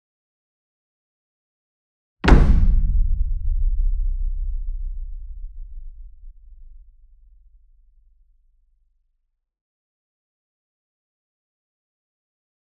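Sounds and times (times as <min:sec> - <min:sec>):
60 inch taiko drum flam with soft beater, near: 0:02.2 - 0:07.6.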